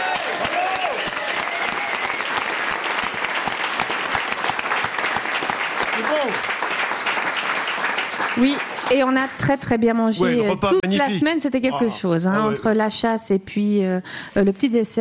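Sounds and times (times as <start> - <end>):
audience applause: 0.0 - 9.4
speech: 6.2 - 6.5, 8.4 - 15.0.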